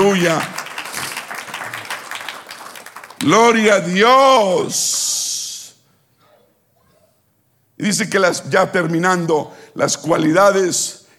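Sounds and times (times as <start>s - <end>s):
audience applause: 0.0s - 3.8s
speech: 0.1s - 0.6s, 3.2s - 5.2s, 7.8s - 11.0s.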